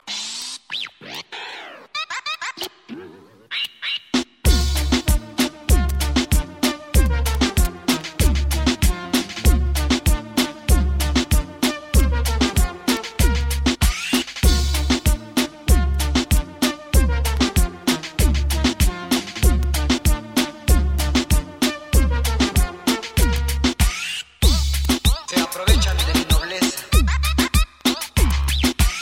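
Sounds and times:
reggaeton music: 4.1s - 29.0s.

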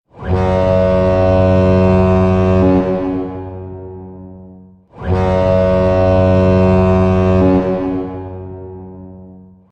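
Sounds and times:
horn: 0.1s - 9.7s.

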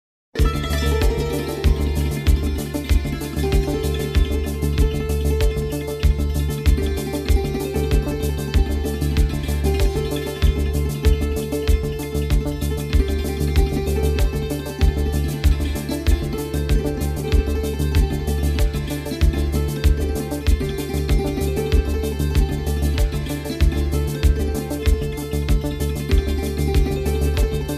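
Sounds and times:
santoor playing: 0.4s - 27.7s.

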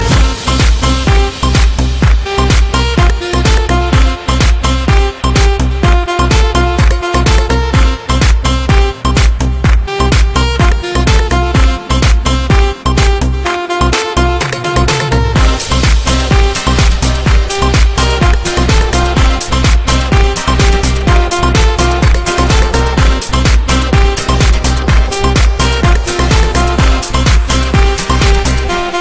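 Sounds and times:
house music: 0.0s - 29.0s.

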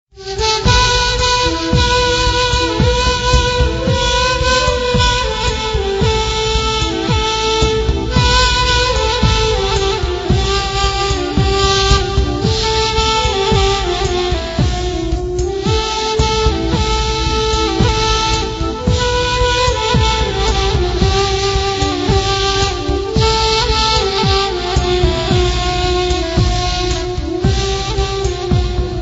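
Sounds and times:
Persian pipe playing: 0.0s - 29.0s.

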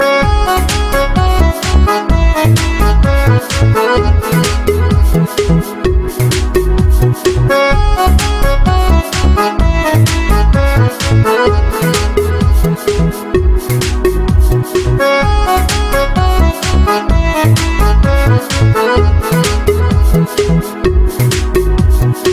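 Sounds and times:
tune: 0.0s - 22.3s.

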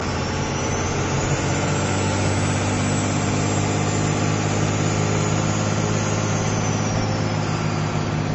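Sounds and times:
Cummins 59 turbo engine: 0.0s - 8.3s.

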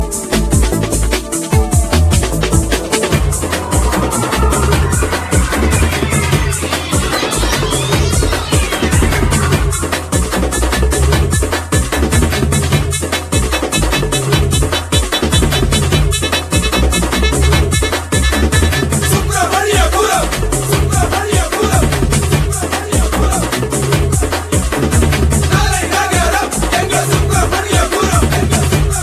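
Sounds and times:
theme music: 0.0s - 29.0s.

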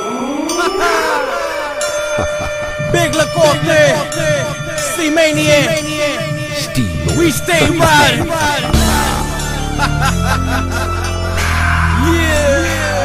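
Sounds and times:
laughter: 0.2s - 4.7s, 7.4s - 12.9s
gangsta beat: 2.2s - 9.6s.

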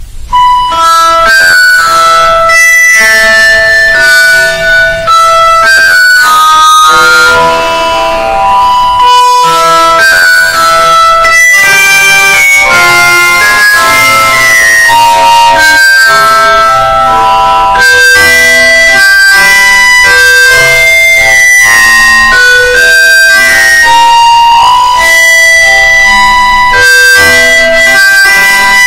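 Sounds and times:
distorted loud audio: 0.0s - 28.8s.

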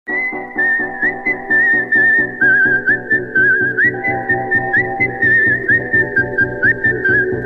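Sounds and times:
whistled song: 0.1s - 7.4s.

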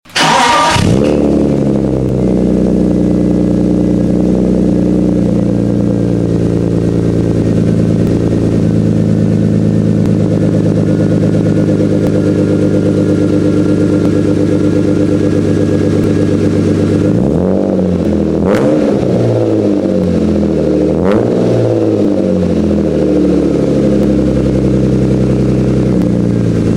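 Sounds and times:
BMW car engine: 0.0s - 26.7s.

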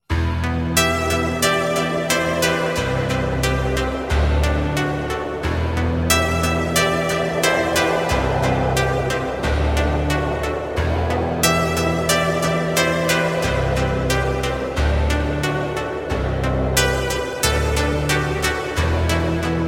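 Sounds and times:
music: 0.0s - 19.6s.

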